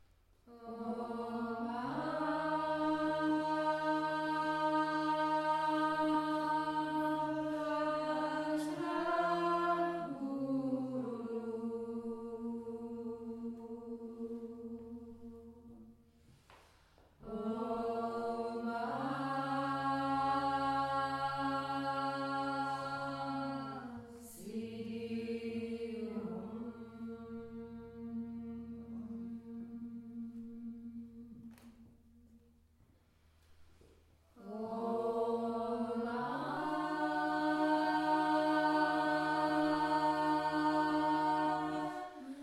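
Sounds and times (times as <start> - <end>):
people chanting in a workshop: 0.5 - 16.0, 17.2 - 31.9, 34.3 - 42.4.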